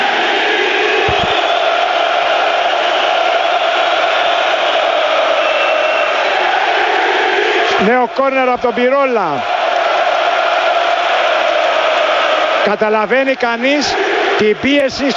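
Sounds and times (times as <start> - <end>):
packed stadium crowd roaring and shouting: 0.0 - 15.1
low thumps: 1.0 - 1.5
speech: 7.9 - 9.5, 12.6 - 15.1.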